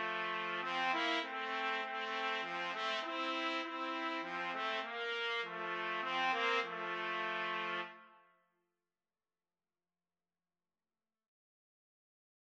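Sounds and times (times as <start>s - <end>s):
trumpet karaoke backing track: 0.0s - 8.1s.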